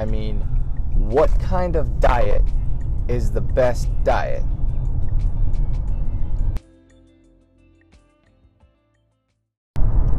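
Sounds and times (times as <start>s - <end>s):
car interior while driving: 0.0s - 6.6s
speech: 1.1s - 4.5s.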